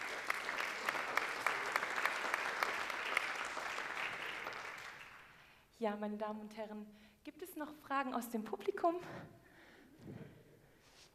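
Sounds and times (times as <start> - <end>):
audience applause: 0.0 - 5.4
speech: 5.8 - 9.4.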